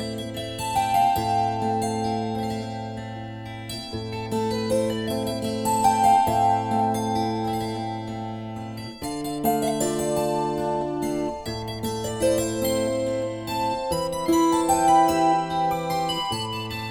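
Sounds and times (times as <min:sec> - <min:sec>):
kantele playing a waltz: 0:00.1 - 0:16.9.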